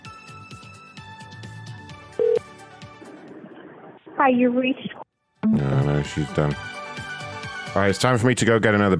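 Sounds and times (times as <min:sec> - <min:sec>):
telephone keypad tone: 0:02.2 - 0:02.4
speech: 0:04.2 - 0:05.0, 0:06.0 - 0:06.8, 0:07.7 - 0:08.9.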